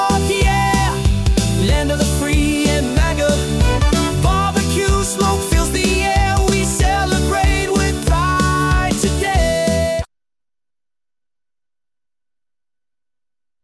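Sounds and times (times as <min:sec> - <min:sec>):
upbeat arena rock music: 0:00.0 - 0:10.1.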